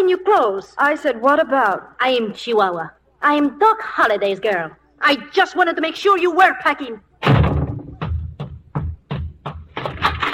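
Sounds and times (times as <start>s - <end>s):
speech: 0.0s - 7.5s
doors slamming shut: 7.2s - 8.4s
banging and commotion: 7.2s - 10.3s.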